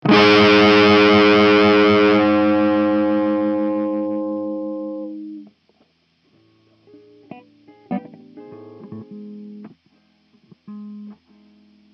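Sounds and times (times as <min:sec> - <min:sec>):
distorted guitar notes in G sharp major at 11th fret: 0:00.0 - 0:05.6, 0:06.7 - 0:09.8.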